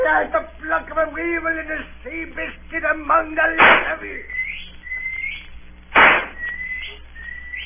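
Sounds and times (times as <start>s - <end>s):
speech: 0.1s - 4.4s
harsh noisy burst: 3.5s - 4.2s, 5.9s - 7.6s
whistled signal of short high rising whistles: 4.3s - 5.5s, 6.1s - 7.6s.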